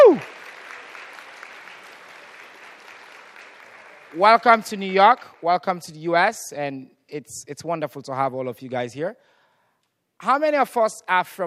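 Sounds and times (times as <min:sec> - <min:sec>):
audience applause: 0:00.0 - 0:04.8
speech: 0:04.1 - 0:09.3, 0:10.2 - 0:11.4.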